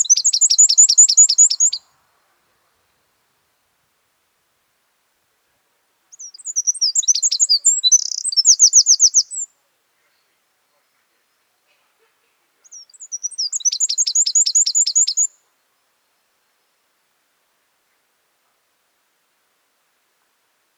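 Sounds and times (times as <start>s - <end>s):
Northern wren song: 0.0s - 1.9s, 6.1s - 9.6s, 12.6s - 15.5s.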